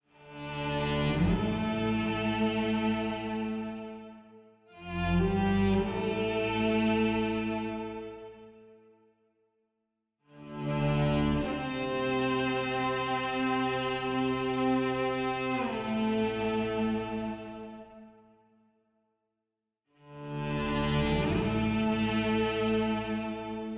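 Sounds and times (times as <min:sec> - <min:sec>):
cello: 0:00.0 - 0:08.9, 0:10.2 - 0:18.3, 0:19.9 - 0:23.7.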